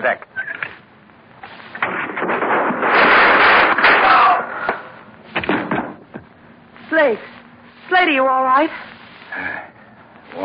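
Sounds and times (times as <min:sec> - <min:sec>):
speech: 0:00.0 - 0:00.3, 0:07.1 - 0:07.3, 0:08.0 - 0:09.7
gunshots: 0:01.8 - 0:04.9.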